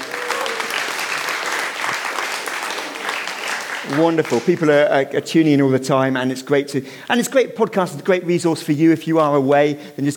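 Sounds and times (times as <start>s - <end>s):
crowd clapping: 0.0s - 5.0s
speech: 3.9s - 10.1s.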